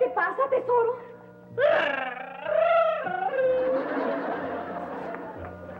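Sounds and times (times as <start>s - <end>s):
speech: 0.2s - 2.3s
crying: 1.5s - 4.1s
laughter: 2.2s - 5.6s.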